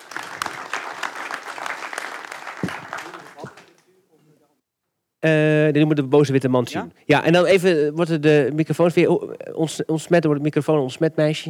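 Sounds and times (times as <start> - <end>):
audience applause: 0.0 - 3.8
speech: 5.2 - 11.4.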